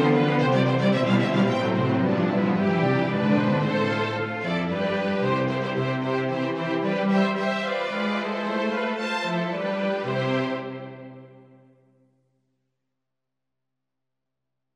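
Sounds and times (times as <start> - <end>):
instrumental music: 0.0 - 11.8.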